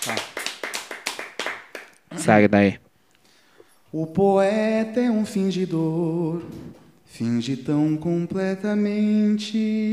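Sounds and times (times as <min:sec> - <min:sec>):
hands clapping: 0:00.0 - 0:02.0
speech: 0:02.1 - 0:02.8, 0:03.9 - 0:09.9.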